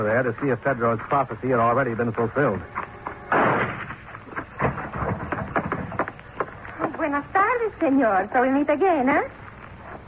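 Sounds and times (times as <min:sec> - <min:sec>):
speech: 0:00.0 - 0:02.9, 0:07.8 - 0:09.4
gunshots from a low barn-like building: 0:03.3 - 0:05.9.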